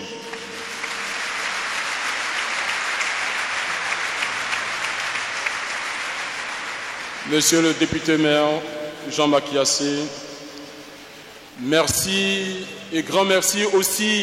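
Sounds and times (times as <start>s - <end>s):
audience applause: 0.0s - 8.7s
speech: 7.3s - 10.3s, 11.6s - 14.2s.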